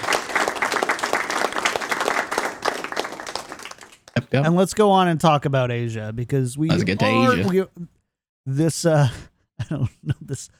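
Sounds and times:
people clapping: 0.0 - 4.2, 6.7 - 7.6
speech: 4.3 - 10.5
laughter: 6.7 - 7.6.

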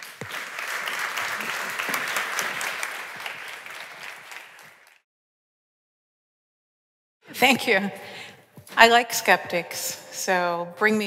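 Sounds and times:
audience applause: 0.0 - 5.0
speech: 7.4 - 11.0.

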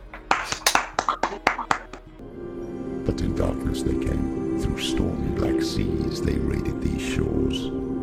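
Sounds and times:
applause: 0.2 - 2.1
speech: 3.1 - 7.8.

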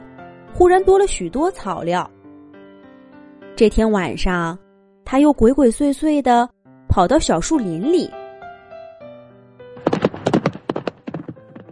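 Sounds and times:
speech: 0.6 - 2.2, 3.6 - 8.2
tall horse running, hooves clip-clopping: 9.8 - 11.7.

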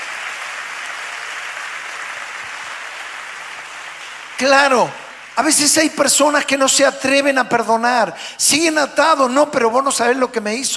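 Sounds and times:
crowd applause: 0.0 - 5.5
speech: 4.4 - 10.7.

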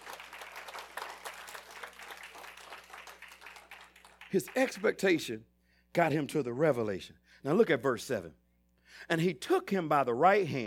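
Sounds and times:
audience clapping hands in praise: 0.0 - 5.2
speech: 4.3 - 10.6.

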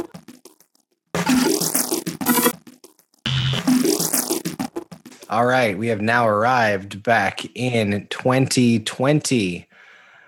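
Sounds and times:
time machine beeps and boops effect: 1.2 - 4.7
speech: 5.3 - 9.7.

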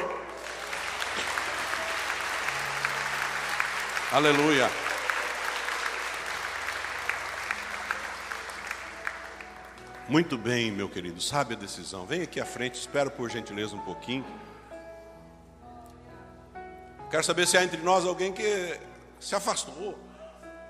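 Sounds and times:
audience applauding: 0.0 - 10.7
speech: 4.1 - 4.8, 10.1 - 14.6, 17.1 - 20.1.

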